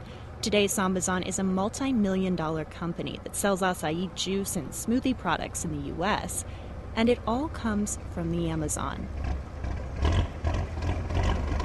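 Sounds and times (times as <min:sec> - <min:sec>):
speech: 0:00.4 - 0:09.4
small motorboat engine on the Amazon River: 0:06.4 - 0:11.6.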